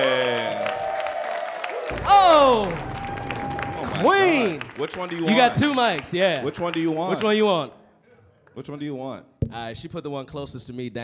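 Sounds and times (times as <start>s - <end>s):
audience clapping and cheering: 0.0s - 7.8s
speech: 2.1s - 2.9s, 4.0s - 7.8s, 8.6s - 11.0s.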